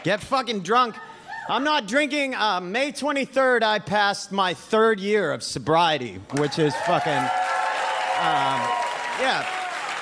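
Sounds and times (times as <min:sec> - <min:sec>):
speech: 0:00.0 - 0:07.4, 0:08.2 - 0:09.6
audience applause: 0:06.4 - 0:10.0.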